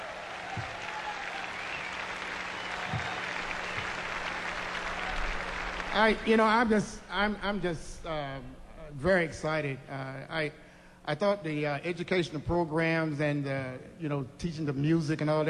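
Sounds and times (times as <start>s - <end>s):
audience applause for a band: 0.0s - 6.8s
speech: 6.0s - 15.4s.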